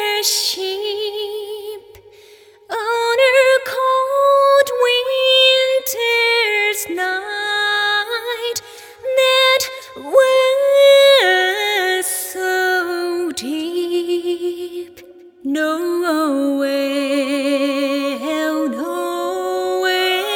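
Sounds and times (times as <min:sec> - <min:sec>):
a cappella singing: 0:00.0 - 0:20.3.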